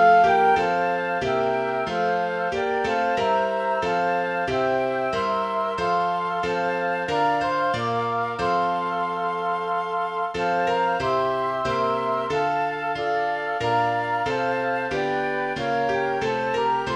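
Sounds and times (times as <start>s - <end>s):
flute: 0.0s - 16.9s
piano: 0.0s - 16.9s.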